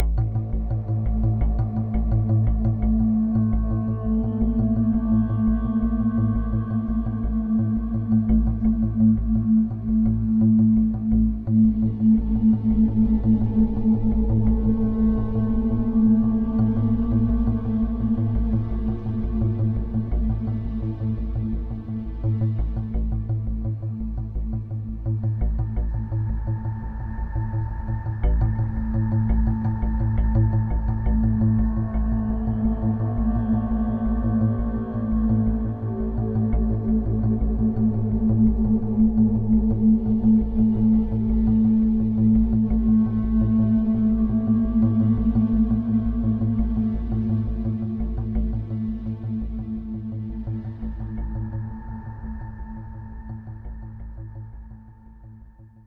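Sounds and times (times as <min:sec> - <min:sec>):
tense ambient music: 0:00.0 - 0:55.8.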